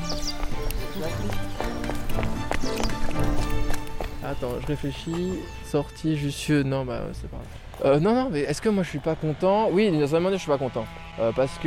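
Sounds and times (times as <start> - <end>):
hurried footsteps of people running in a panicked crowd surge: 0.0 - 5.5
speech: 1.0 - 1.6, 4.3 - 11.6.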